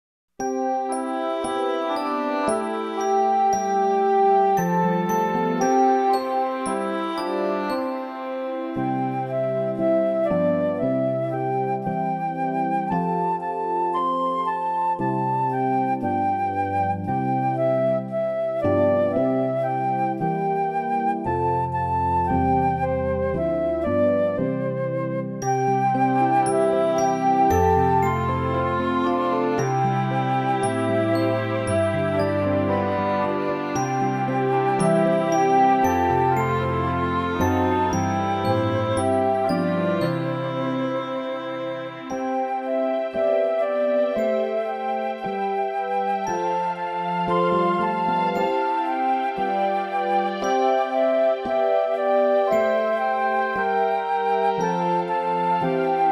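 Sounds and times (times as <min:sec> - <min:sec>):
instrumental children's hymn: 0:00.4 - 0:56.0.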